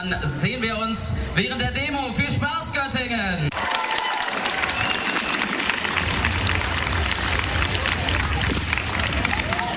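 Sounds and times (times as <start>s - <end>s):
speech: 0.0s - 3.8s
crowd cheering and clapping at start of Göttingen Christopher Street Day march: 3.5s - 9.7s
low rumble: 6.0s - 9.6s.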